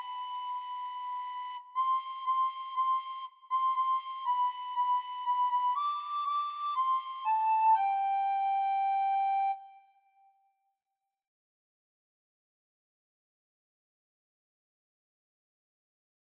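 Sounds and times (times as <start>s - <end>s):
bass flute solo playing a Christmas song: 0.0s - 9.9s.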